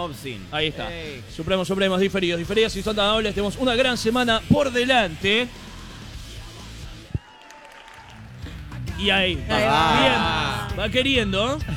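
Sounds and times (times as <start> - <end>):
speech: 0.0 - 5.7, 9.0 - 11.7
audience applause: 7.2 - 8.8, 9.5 - 10.9
laughter: 9.2 - 11.2.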